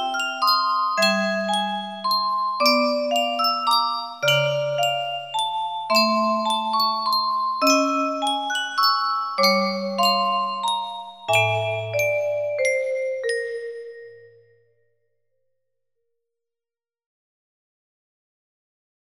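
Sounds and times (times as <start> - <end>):
carillon bells: 0.0 - 14.6.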